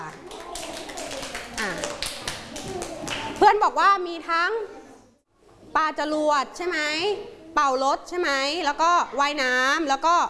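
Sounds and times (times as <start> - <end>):
classroom students clapping: 0.0 - 3.4
speech: 3.4 - 4.8, 5.7 - 10.2.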